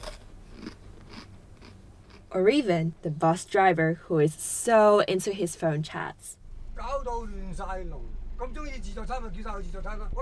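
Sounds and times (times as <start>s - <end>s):
person crunching a snack: 0.0s - 2.3s
low steady hum: 0.0s - 10.2s
speech: 2.3s - 10.2s.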